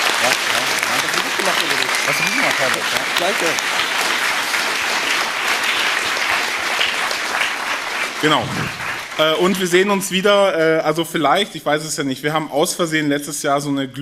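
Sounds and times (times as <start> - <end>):
audience applause: 0.0 - 10.2
speech: 2.1 - 3.8, 8.2 - 14.0.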